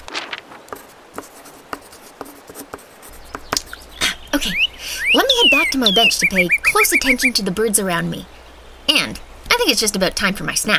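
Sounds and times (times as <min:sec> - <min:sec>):
pen or pencil scratching across paper writing a note on a list: 0:00.7 - 0:03.9
sharp ticks and taps: 0:02.7 - 0:04.0
speech: 0:04.4 - 0:10.7.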